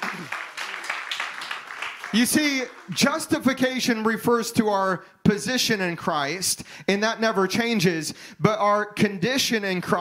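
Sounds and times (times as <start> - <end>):
audience clapping in praise: 0.0 - 3.8
speech: 2.1 - 9.9.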